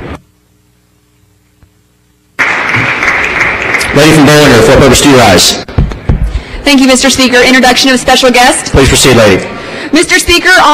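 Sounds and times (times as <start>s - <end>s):
applause welcoming guests in a legislative chamber: 2.4s - 5.4s
speech: 4.0s - 5.7s, 6.7s - 10.7s.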